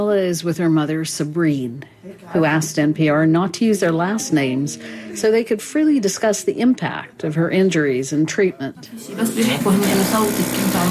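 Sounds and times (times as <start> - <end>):
speech: 0.0 - 10.8
vacuum wound dressing machine whirring: 9.2 - 10.8.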